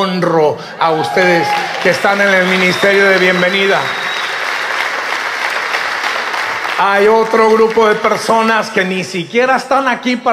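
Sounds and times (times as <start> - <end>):
speech: 0.0 - 4.1, 6.8 - 10.3
audience applause: 0.8 - 8.8.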